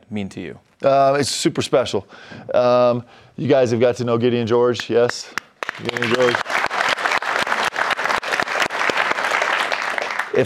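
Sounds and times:
speech: 0.1 - 6.6
audience clapping: 4.8 - 10.4.

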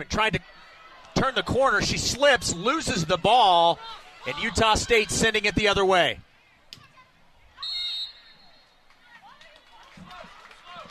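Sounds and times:
speech: 0.0 - 0.6, 1.2 - 6.3
referee's whistle: 7.6 - 8.8.

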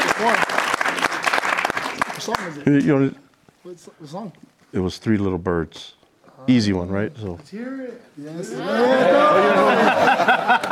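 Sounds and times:
group clapping hands: 0.0 - 2.7, 10.4 - 10.7
speech: 0.2 - 0.6, 2.2 - 10.7
laughter: 8.5 - 10.7.

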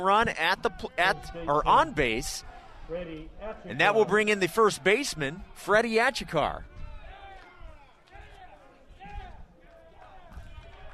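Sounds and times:
speech: 0.0 - 6.7
baseball dugout applauding and cheering: 5.1 - 10.9.

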